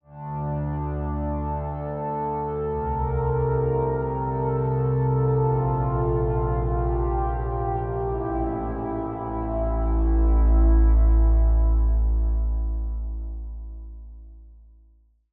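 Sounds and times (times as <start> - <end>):
synth pad: 0.2 - 14.7.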